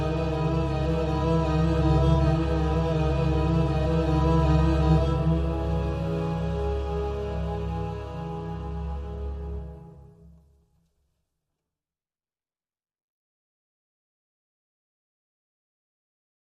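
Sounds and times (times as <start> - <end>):
string instruments: 0.0 - 10.7.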